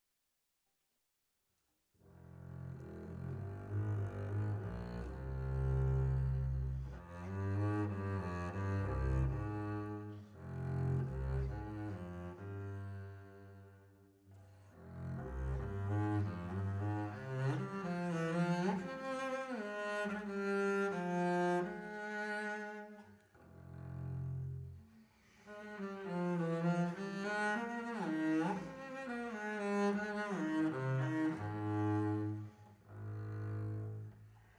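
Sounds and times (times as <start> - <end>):
double bass: 2.2 - 22.6, 23.3 - 34.4.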